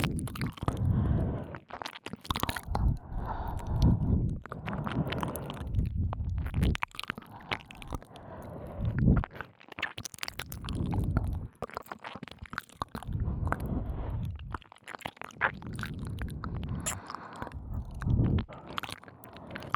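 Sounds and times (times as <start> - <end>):
licking both ears: 0.0 - 19.7
breathing into both ears: 0.8 - 1.6, 2.7 - 5.9, 7.2 - 9.0, 16.3 - 19.7.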